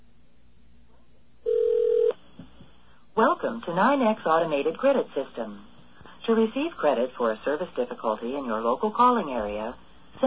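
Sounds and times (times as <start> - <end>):
telephone dial tone: 1.5 - 2.2
speech: 3.2 - 5.7, 6.3 - 10.2.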